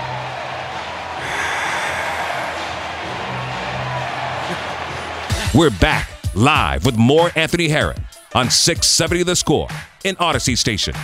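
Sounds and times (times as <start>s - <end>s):
baseball stadium crowd cheering home run: 0.0s - 6.2s
speech: 5.6s - 11.0s.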